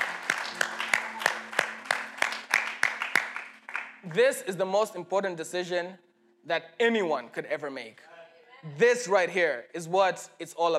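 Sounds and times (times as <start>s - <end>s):
church congregation clapping: 0.0s - 4.5s
speech: 4.0s - 10.7s.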